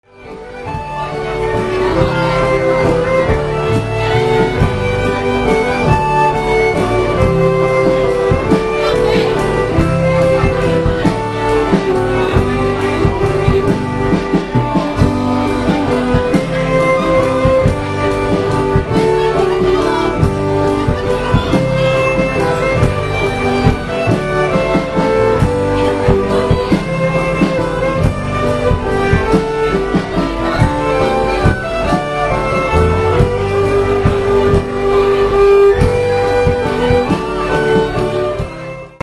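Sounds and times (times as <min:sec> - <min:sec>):
Gaelic waltz music: 0:00.0 - 0:39.0.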